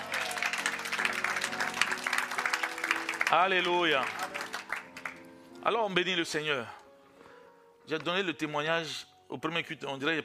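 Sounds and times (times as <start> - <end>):
congregation clapping for the Lord: 0.0 - 5.3
speech: 3.3 - 4.5, 5.6 - 6.8, 7.9 - 10.2.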